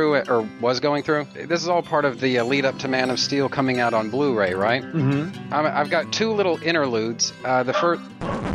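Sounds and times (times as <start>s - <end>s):
speech: 0.0s - 8.4s
dog barking: 7.7s - 8.4s.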